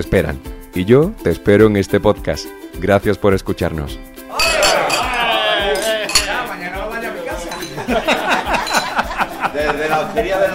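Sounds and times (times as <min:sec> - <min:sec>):
speech: 0:00.0 - 0:04.1, 0:07.9 - 0:08.4, 0:09.5 - 0:10.5
cutlery and dishes clinking: 0:04.3 - 0:06.6, 0:07.4 - 0:09.2
overlapping chatter in a busy restaurant dining room: 0:04.3 - 0:06.6
laughter: 0:04.3 - 0:10.5.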